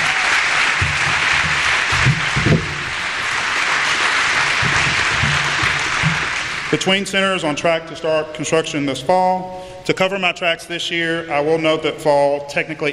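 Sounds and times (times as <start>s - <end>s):
audience applause: 0.0s - 7.4s
speech: 6.8s - 12.9s.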